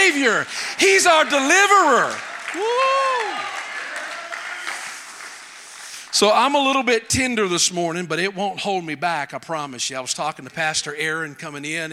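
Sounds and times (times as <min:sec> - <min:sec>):
crowd applause: 0:00.0 - 0:06.9
speech: 0:00.2 - 0:03.6, 0:06.1 - 0:11.9.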